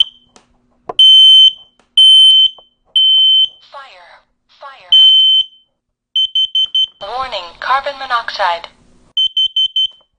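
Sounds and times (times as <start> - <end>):
smoke and carbon monoxide detector test alarm beeps: 1.0 - 3.7, 4.9 - 7.0, 9.2 - 10.1.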